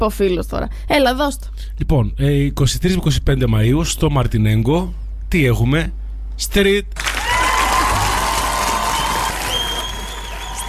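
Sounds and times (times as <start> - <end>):
speech: 0.0 - 7.1
big applause: 7.0 - 10.6.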